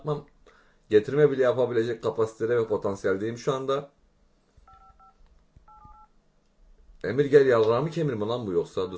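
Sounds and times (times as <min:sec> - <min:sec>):
speech: 0:00.0 - 0:00.3, 0:00.9 - 0:04.0, 0:07.0 - 0:08.9
low noise: 0:00.0 - 0:08.9
telephone keypad dialing tones: 0:04.7 - 0:06.1.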